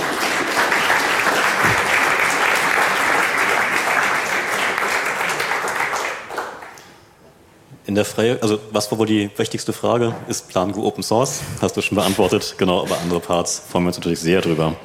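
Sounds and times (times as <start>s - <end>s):
audience applause: 0.0s - 6.8s
speech: 8.0s - 14.8s.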